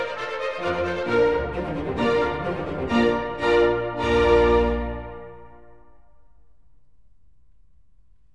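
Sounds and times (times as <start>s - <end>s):
classical ensemble piece in B flat: 0.0s - 6.3s.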